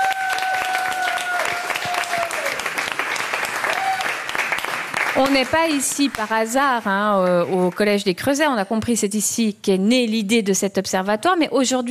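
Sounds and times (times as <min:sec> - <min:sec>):
audience applause: 0:00.0 - 0:07.8
speech: 0:05.2 - 0:11.8.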